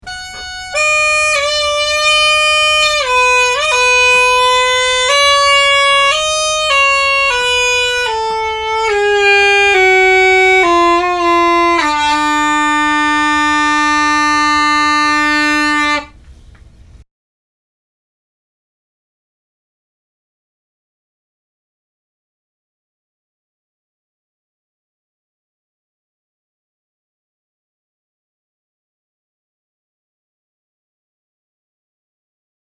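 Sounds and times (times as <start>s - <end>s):
uilleann pipes playing a set dance: 0.0s - 16.4s.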